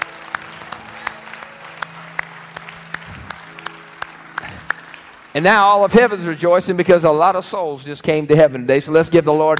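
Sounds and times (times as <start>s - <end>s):
audience applause as hand clap of praise: 0.0s - 7.5s
sustained low musical tone: 0.0s - 8.3s
speech: 5.4s - 9.5s.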